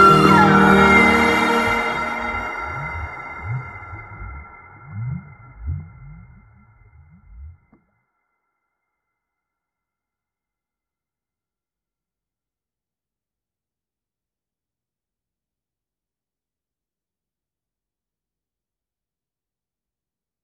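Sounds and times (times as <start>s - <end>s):
whales theme music: 0.0s - 4.8s.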